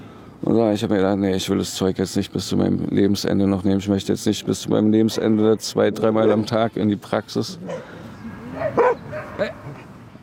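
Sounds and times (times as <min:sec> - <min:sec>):
speech: 0:00.4 - 0:08.0
dog yapping: 0:08.6 - 0:09.7.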